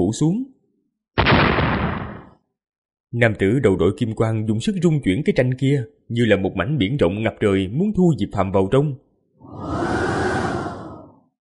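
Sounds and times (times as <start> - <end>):
speech: 0.0 - 0.5, 3.1 - 10.0
howling wind whoosh: 9.4 - 11.3.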